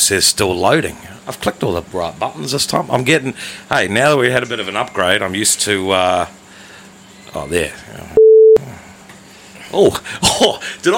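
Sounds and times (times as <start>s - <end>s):
speech: 0.0s - 6.4s, 7.3s - 8.2s, 9.7s - 10.9s
phone electronic tone: 8.2s - 8.6s.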